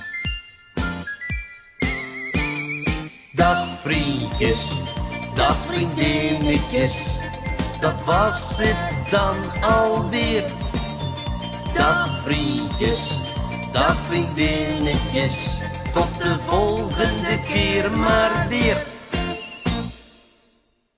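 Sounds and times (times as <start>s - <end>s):
ending tune: 0.3s - 19.9s.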